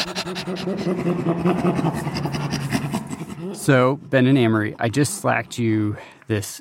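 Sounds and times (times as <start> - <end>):
person imitating a chimpanzee panting laugh: 0.0 - 3.6
speech: 0.2 - 2.6, 3.5 - 6.5.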